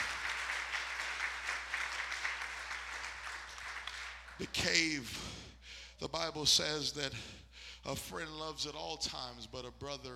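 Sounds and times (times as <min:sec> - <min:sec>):
audience clapping hands: 0:00.0 - 0:05.0
speech: 0:04.4 - 0:05.4, 0:06.0 - 0:10.1.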